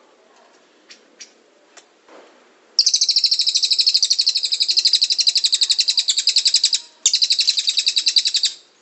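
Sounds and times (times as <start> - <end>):
cililin bird calling: 2.8 - 8.7.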